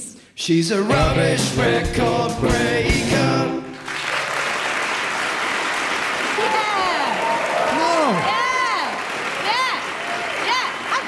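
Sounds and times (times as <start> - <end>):
speech: 0.4 - 3.6
audience applause: 3.7 - 11.0.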